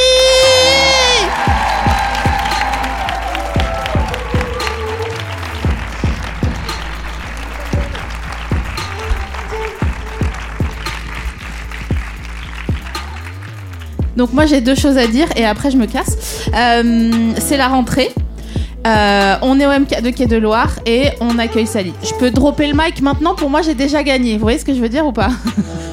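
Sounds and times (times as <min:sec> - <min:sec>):
audience cheering and applauding for a guest: 0:00.0 - 0:14.2
speech: 0:14.2 - 0:18.2, 0:18.8 - 0:25.9.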